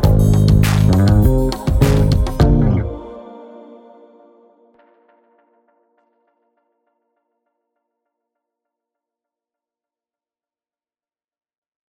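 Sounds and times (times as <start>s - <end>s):
happy bass music: 0.0s - 3.1s.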